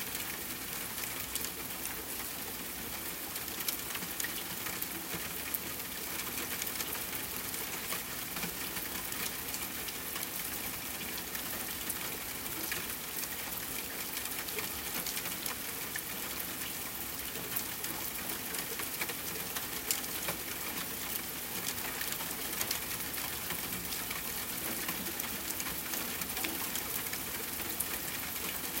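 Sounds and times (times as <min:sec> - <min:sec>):
gentle rain: 0:00.0 - 0:28.7.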